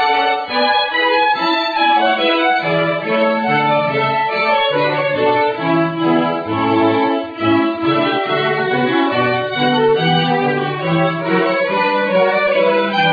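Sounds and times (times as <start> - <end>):
violin playing a gavotte: 0.0 - 13.1.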